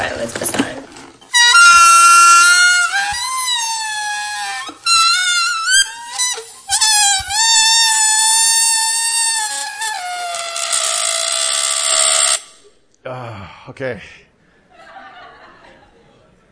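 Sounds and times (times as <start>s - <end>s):
air squealing out of a stretched balloon neck: 1.3s - 12.7s
speech: 13.8s - 14.3s
laughter: 14.7s - 16.5s.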